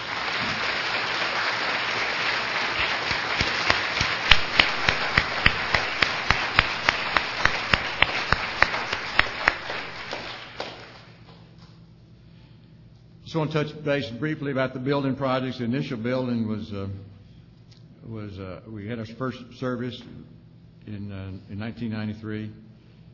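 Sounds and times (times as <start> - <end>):
audience applause: 0.0 - 11.1
speech: 13.4 - 17.1, 18.0 - 22.6.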